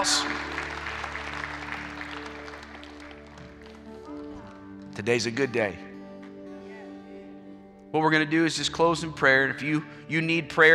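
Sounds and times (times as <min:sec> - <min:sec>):
audience applause: 0:00.0 - 0:04.6
speech: 0:05.0 - 0:05.9, 0:07.9 - 0:10.7.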